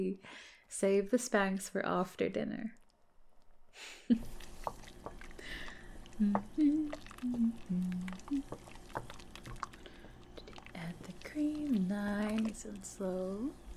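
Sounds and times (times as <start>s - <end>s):
speech: 0.0s - 2.8s, 3.8s - 4.4s, 6.2s - 9.1s, 10.8s - 13.6s
food being stirred in a skillet: 4.2s - 13.7s.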